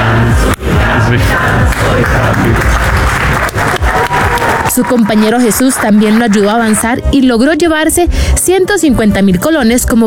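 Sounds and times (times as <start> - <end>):
studio audience at a Costa Rican television quiz show chanting in unison: 0.0 - 6.9
studio audience applause: 1.7 - 7.0
speech: 4.8 - 10.0.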